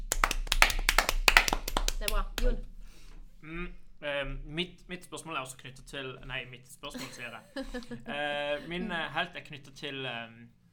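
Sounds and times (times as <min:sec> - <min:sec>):
hand clapping: 0:00.0 - 0:02.6
speech: 0:02.2 - 0:02.7, 0:03.4 - 0:10.6.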